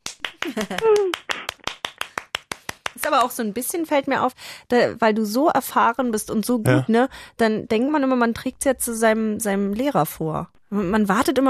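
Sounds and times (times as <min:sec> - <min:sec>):
hands clapping rhythmically: 0:00.0 - 0:03.5
speech: 0:00.5 - 0:01.3, 0:03.0 - 0:11.4.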